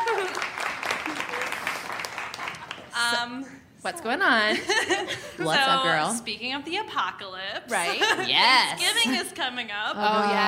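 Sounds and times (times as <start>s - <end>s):
audience applause welcoming a guest at a live show: 0.0s - 3.1s
speech: 3.1s - 10.4s.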